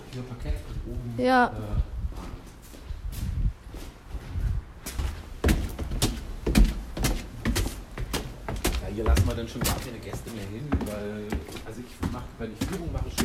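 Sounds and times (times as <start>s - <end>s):
speech: 0.1s - 2.3s, 9.0s - 13.2s
footsteps climbing steep wooden attic stairs in an old building: 2.1s - 13.2s.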